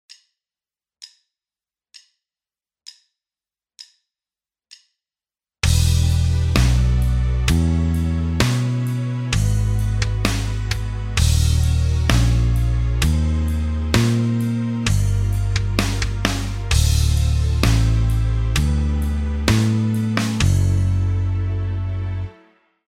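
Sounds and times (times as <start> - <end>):
guitar backing track: 5.6 - 22.2.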